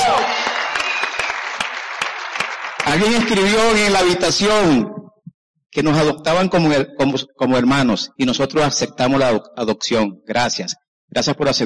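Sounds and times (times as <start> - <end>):
audience applause: 0.0 - 3.9
speech: 2.9 - 5.0, 5.8 - 11.6.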